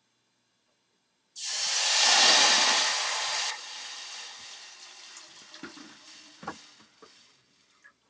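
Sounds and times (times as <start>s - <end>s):
water poured into pot of tea with spices: 1.4s - 7.7s.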